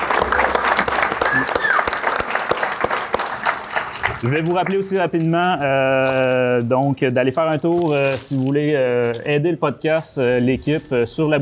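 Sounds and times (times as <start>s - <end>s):
audience applause: 0.0s - 4.9s
speech: 4.2s - 11.4s.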